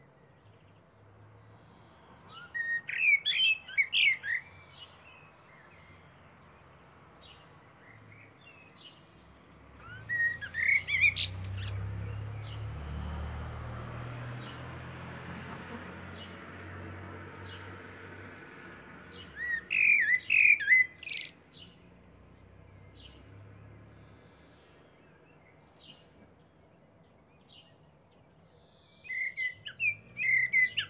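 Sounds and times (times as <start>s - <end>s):
Common blackbird singing fluty whistled phrases: 1.4s - 12.7s, 19.0s - 30.8s.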